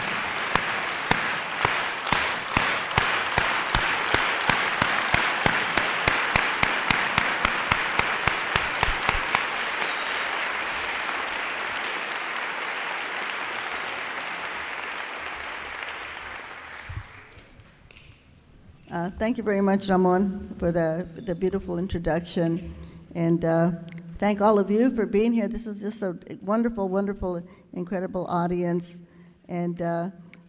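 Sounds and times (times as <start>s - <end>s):
farm worker clap by audience: 0.0s - 18.1s
speech: 19.2s - 30.2s.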